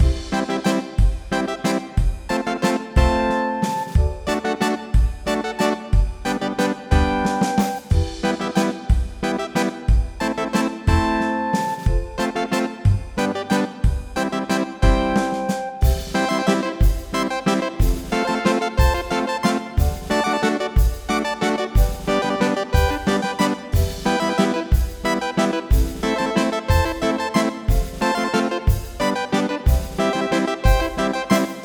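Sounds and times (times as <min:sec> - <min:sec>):
8-bit chiptune music: 0:01.3 - 0:31.6.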